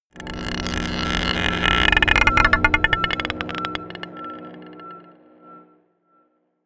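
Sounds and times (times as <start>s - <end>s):
scraping a marble pot: 0.2s - 5.1s
dark drones: 0.2s - 5.9s.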